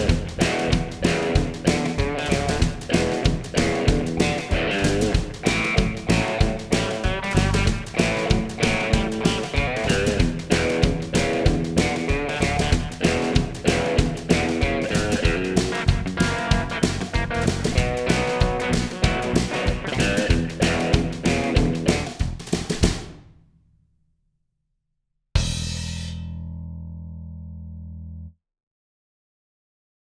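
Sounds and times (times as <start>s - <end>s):
rockabilly backing track: 0.0s - 23.3s.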